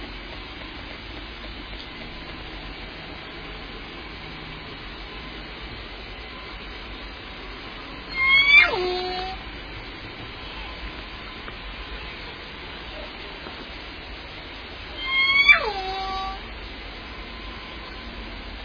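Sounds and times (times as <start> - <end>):
orca calling: 8.1 - 9.4, 15.0 - 16.4.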